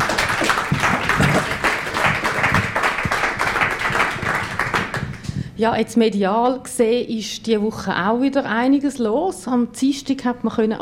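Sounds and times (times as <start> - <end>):
audience applause for guests: 0.0 - 5.4
speech: 5.6 - 10.7.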